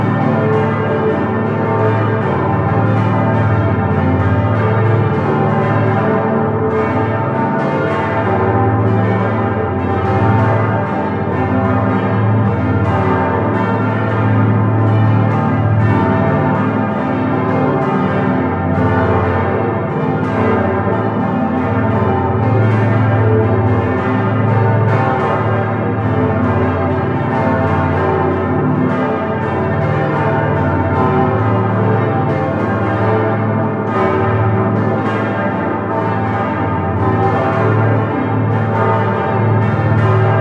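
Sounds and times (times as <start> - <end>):
full peal of parish church bells: 0.0 - 40.4.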